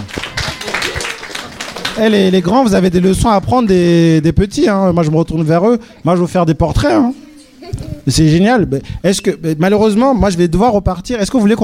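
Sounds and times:
children clapping: 0.0 - 3.6
speech: 2.0 - 11.6.

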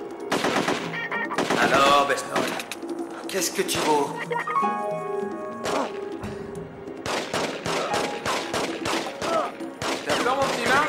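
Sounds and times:
rapid gunfire: 0.3 - 2.8, 7.0 - 10.8
speech: 1.6 - 2.7, 3.3 - 5.1.

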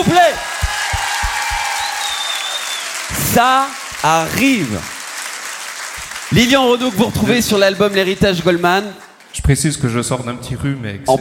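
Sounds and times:
audience applause at a concert in Roanne: 0.0 - 9.3
soft low thuds: 0.4 - 1.7
speech: 3.4 - 5.0, 6.3 - 11.1.

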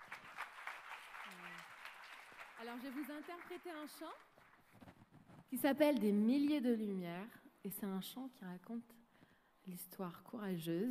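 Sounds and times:
audience applause: 0.0 - 4.8
speech: 2.6 - 4.3, 5.5 - 9.0, 9.6 - 10.8.

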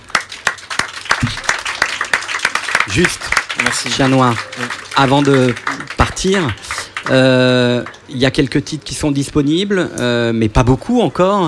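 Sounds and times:
audience applause: 0.0 - 8.1
speech: 2.9 - 11.4.

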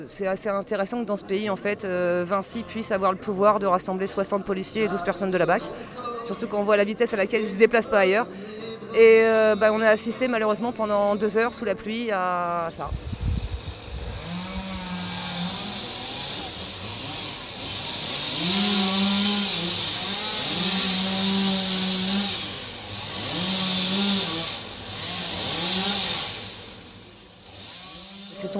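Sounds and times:
speech: 0.0 - 13.1
chainsaw cutting down trees: 13.4 - 28.5.

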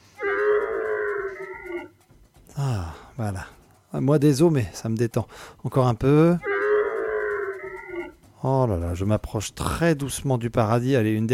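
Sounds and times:
camel bellowing: 0.1 - 2.6, 6.2 - 8.4
speech: 2.6 - 6.5, 8.4 - 11.3.

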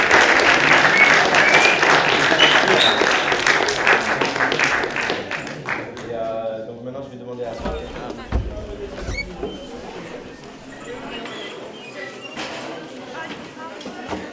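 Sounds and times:
audience applause: 0.0 - 6.1.

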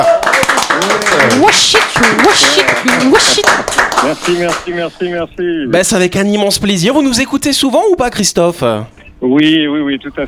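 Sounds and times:
audience applause: 0.0 - 4.7
speech: 1.4 - 10.2.

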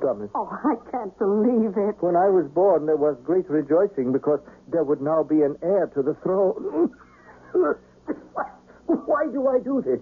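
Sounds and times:
speech: 0.0 - 10.0
person coughing: 6.7 - 8.3.

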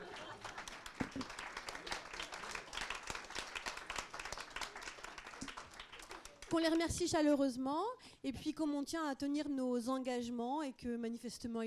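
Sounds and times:
audience applauding panel speakers: 0.0 - 6.6
speech: 6.5 - 11.6.

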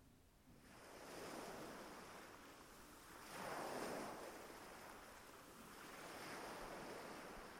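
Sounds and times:
soft wind hiss: 0.0 - 7.5
ocean waves breaking on a beach: 0.5 - 7.5.

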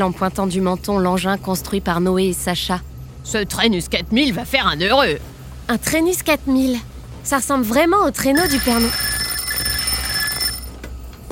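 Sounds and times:
speech: 0.0 - 9.1
telephone ringing: 8.1 - 10.8.

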